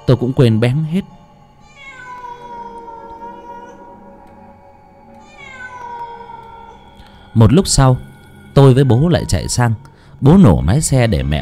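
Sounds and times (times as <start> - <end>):
speech: 0.1 - 1.2, 7.4 - 11.4
cat yowling like a crying baby: 1.6 - 4.6, 5.2 - 7.0.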